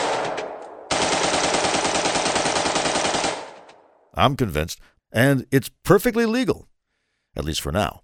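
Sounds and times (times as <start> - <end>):
carbine with bump-fire stock firing rapid near-automatic rounds: 0.0 - 3.8
speech: 4.2 - 6.7, 7.4 - 8.0.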